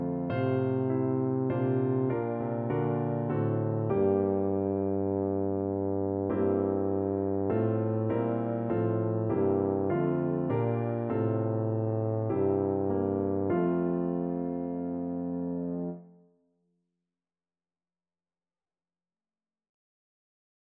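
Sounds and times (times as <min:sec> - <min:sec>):
tuba playing a hymn: 0:00.0 - 0:16.0.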